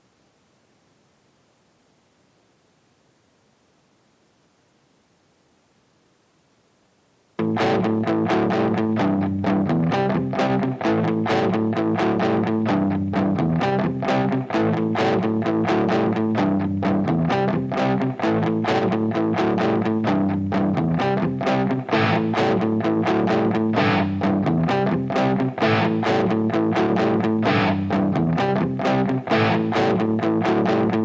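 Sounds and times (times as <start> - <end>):
electric guitar rhythm: 7.4 - 31.0.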